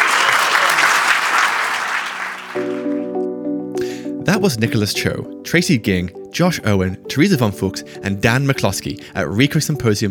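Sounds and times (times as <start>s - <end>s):
audience applause: 0.0s - 3.0s
speech: 4.3s - 10.1s.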